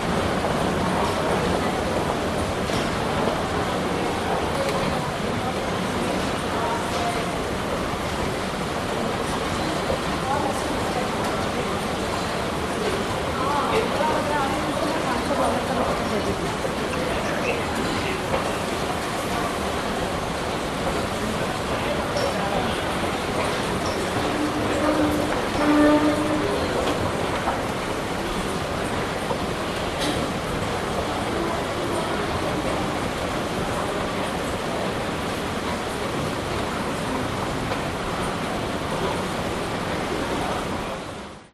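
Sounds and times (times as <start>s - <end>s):
people in a busy mall food court: 0.0s - 41.4s
chairs scraping in a mall food court: 23.4s - 27.6s.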